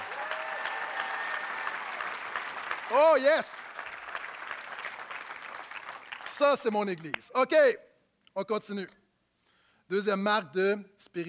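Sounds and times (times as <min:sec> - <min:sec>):
audience applause: 0:00.0 - 0:07.2
speech: 0:02.9 - 0:03.6, 0:06.4 - 0:09.0, 0:09.9 - 0:11.2.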